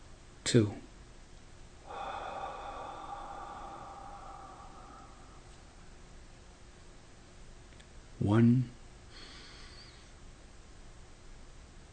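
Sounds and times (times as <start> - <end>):
speech: 0.5 - 0.8, 8.3 - 8.8
deep breath in during a guided breathing exercise: 1.8 - 6.1, 9.1 - 10.1.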